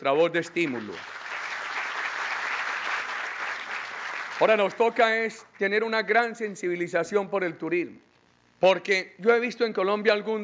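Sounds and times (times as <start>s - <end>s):
speech: 0.0s - 1.2s, 4.4s - 10.4s
crowd applause honouring soldiers and police at a tourism-recovery speech in Colombia: 0.5s - 5.2s.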